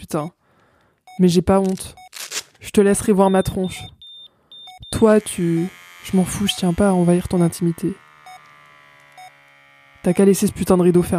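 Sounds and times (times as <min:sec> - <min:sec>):
speech: 0:00.1 - 0:00.4, 0:01.2 - 0:02.0, 0:02.6 - 0:04.0, 0:04.9 - 0:08.0, 0:10.0 - 0:11.1
medical monitor beeps: 0:01.0 - 0:02.1, 0:02.9 - 0:07.6, 0:08.2 - 0:08.5, 0:09.1 - 0:09.4, 0:10.1 - 0:11.1
steady electronic hum: 0:04.6 - 0:11.1.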